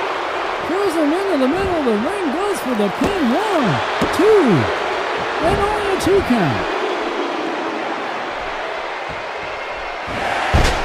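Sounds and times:
arena crowd roaring: 0:00.0 - 0:10.8
speech: 0:00.9 - 0:04.8, 0:05.4 - 0:06.8.

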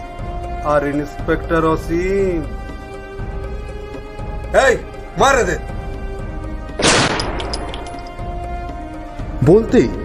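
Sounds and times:
speech: 0:00.6 - 0:02.6, 0:04.5 - 0:05.8, 0:09.5 - 0:10.0
pistol fired into the air, audio drama sound effect: 0:06.8 - 0:07.8.

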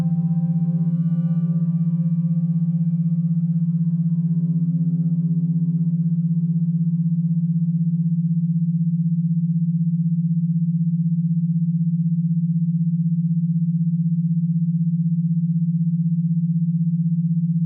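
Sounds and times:
brief brighter tone with higher overtones: 0:00.0 - 0:07.8
binaural beats steady low tone: 0:00.0 - 0:17.6.

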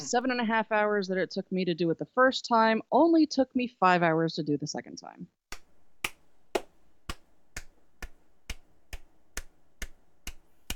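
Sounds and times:
speech: 0:00.1 - 0:05.4
person clapping hands: 0:05.5 - 0:10.7.

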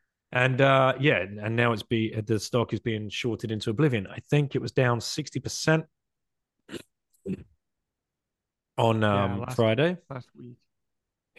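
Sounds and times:
speech: 0:00.3 - 0:06.0, 0:06.7 - 0:07.5, 0:08.8 - 0:10.6
person coughing: 0:06.7 - 0:07.5.

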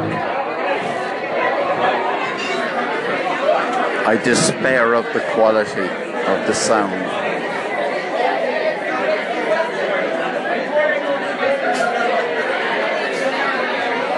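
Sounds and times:
excited crowd chatter: 0:00.0 - 0:14.1
speech: 0:04.1 - 0:07.2.

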